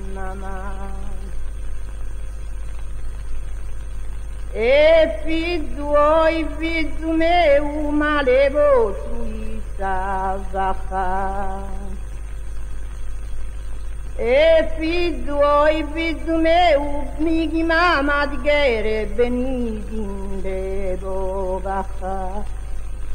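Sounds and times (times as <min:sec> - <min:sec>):
unaccompanied monodic chant: 0:00.0 - 0:01.4, 0:04.5 - 0:12.0, 0:14.2 - 0:22.5.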